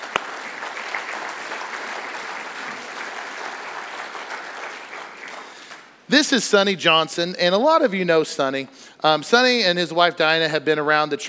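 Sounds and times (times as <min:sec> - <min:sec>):
audience applause: 0:00.0 - 0:06.0
speech: 0:06.1 - 0:11.2.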